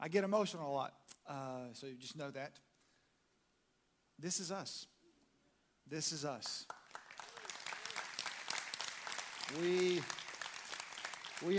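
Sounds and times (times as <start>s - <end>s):
speech: 0.0s - 2.7s, 4.2s - 4.9s, 5.9s - 6.8s, 9.5s - 10.2s, 11.4s - 11.5s
audience applauding: 6.7s - 11.5s.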